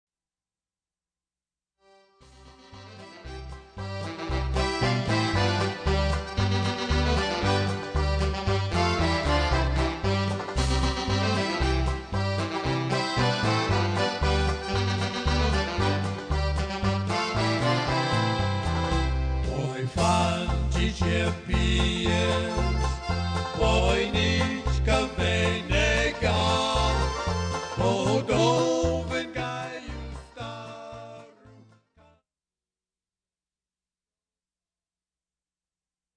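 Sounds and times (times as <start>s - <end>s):
polka music: 1.9s - 32.1s.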